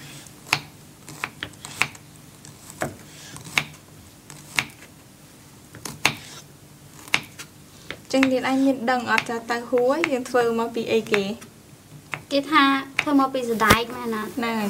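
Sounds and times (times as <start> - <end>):
knife cutting tofu into small pieces: 0.4 - 4.9, 5.7 - 10.2
speech: 8.1 - 11.5, 12.3 - 14.6.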